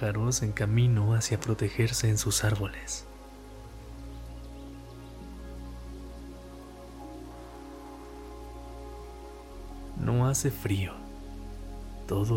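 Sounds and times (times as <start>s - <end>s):
speech: 0.0s - 3.1s, 10.0s - 11.0s, 12.1s - 12.3s
gentle rain: 0.0s - 12.3s.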